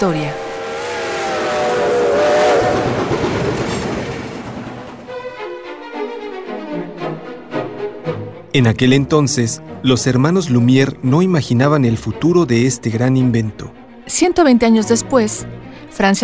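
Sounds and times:
speech: 0.0s - 0.4s, 8.5s - 16.2s
train arriving at a station: 0.0s - 6.0s.

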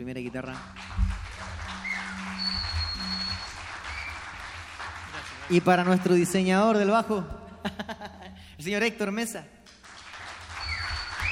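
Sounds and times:
speech: 0.0s - 1.6s, 5.5s - 7.9s, 8.6s - 9.6s
audience applause: 0.4s - 6.4s, 9.7s - 11.3s
low sustained hum: 0.6s - 4.1s
high whistle-like tone: 0.6s - 4.3s, 10.6s - 11.3s
laughter: 7.6s - 8.4s.

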